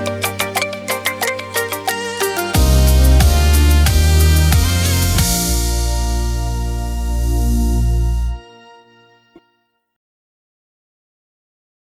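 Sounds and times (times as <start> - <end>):
saxophone playing laid back reggae in B-flat major: 0.0 - 9.5.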